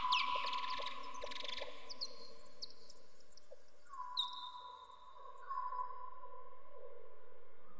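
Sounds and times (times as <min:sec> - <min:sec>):
bats calling: 0:00.0 - 0:05.0
insects: 0:00.0 - 0:06.0.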